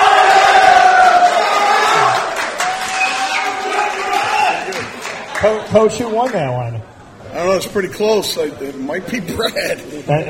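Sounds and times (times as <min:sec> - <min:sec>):
crowd cheering: 0:00.0 - 0:06.4
speech: 0:05.4 - 0:10.2.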